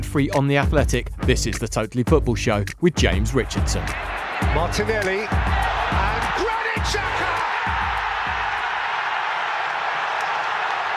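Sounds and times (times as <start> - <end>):
speech: 0.0 - 7.4
crowd of Gunners fans cheering: 3.0 - 10.9.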